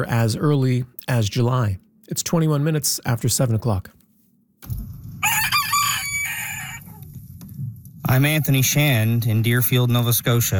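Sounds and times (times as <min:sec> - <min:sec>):
speech: 0:00.0 - 0:04.0, 0:04.6 - 0:04.9, 0:08.1 - 0:10.5
rooster crowing: 0:05.2 - 0:07.0.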